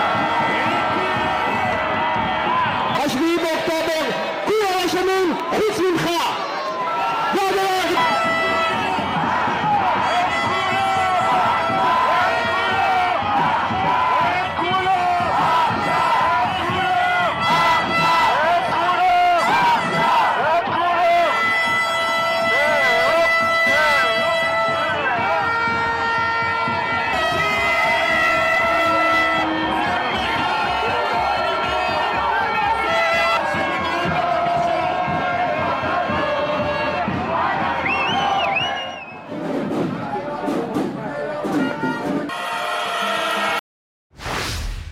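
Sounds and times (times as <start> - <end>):
protest crowd shouting and chanting at large demonstration: 0.0 - 43.6
high whistles: 37.8 - 39.3.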